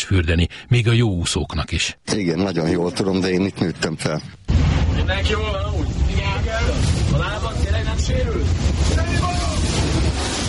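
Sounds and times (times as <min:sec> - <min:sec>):
speech: 0:00.0 - 0:04.5, 0:05.1 - 0:05.9
deep steady rumble: 0:04.5 - 0:10.4
strong wind rushing over a microphone above rough water on Lake Balaton: 0:04.5 - 0:10.4.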